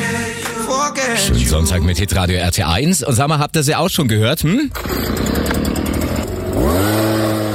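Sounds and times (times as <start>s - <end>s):
speech: 0.8s - 5.6s
leaf blower engine running: 4.7s - 7.5s.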